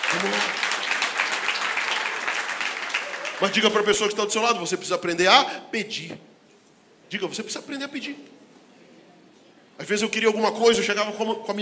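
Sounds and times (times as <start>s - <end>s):
crowd applauding: 0.0s - 4.2s
speech: 0.1s - 0.6s, 3.4s - 6.3s, 7.1s - 8.4s, 9.8s - 11.6s.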